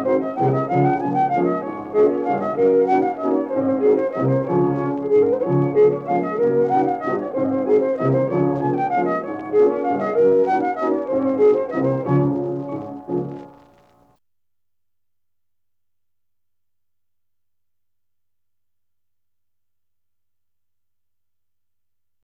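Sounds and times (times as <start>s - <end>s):
music: 0.0s - 14.2s.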